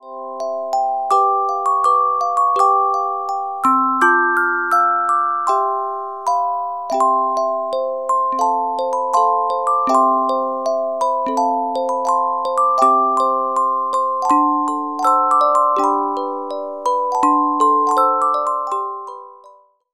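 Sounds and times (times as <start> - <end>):
carillon music box melodies: 0.0 - 19.9.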